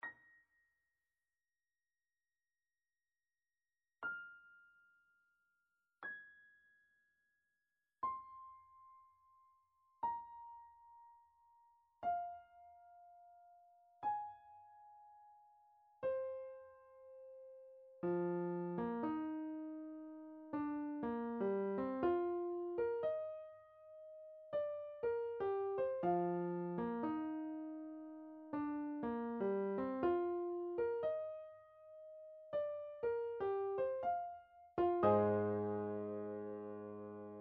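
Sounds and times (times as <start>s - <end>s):
piano: 4.0s - 5.4s, 6.0s - 6.8s, 8.0s - 37.3s.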